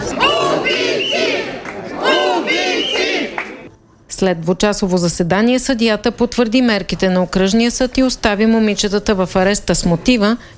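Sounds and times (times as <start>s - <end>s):
protesters chanting outside a courthouse: 0.0s - 3.7s
speech: 4.2s - 10.5s.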